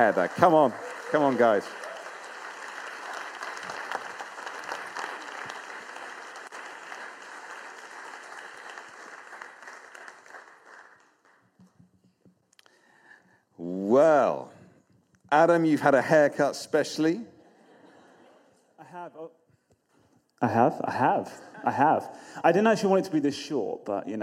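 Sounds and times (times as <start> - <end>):
speech: 0.0 - 1.8, 15.3 - 17.3, 18.9 - 19.4, 20.4 - 24.2
audience applause welcoming a couple onto the stage: 0.0 - 11.5.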